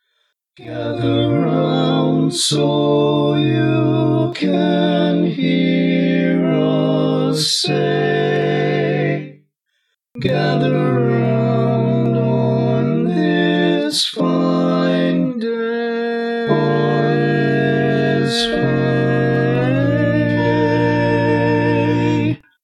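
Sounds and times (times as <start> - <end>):
barbershop tags all parts singing: 0.6 - 9.2, 10.2 - 22.6.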